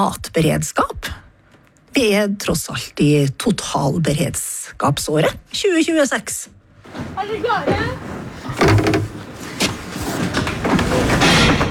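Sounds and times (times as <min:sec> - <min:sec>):
speech: 0:00.0 - 0:01.0, 0:02.0 - 0:08.8
heavy barn door sliding open: 0:06.9 - 0:11.6.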